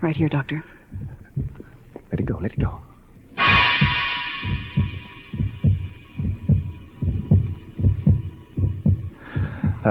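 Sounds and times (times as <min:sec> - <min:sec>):
speech: 0:00.0 - 0:01.1, 0:02.4 - 0:02.9
amplified heartbeat of an injured man during emergency treatment: 0:00.9 - 0:09.8
sustained high electronic hum: 0:03.3 - 0:09.8.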